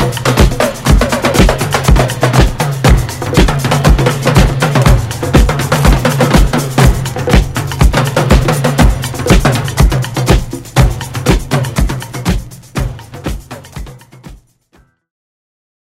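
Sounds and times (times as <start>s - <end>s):
disco drum band with jerky rhythm: 0.0s - 14.8s.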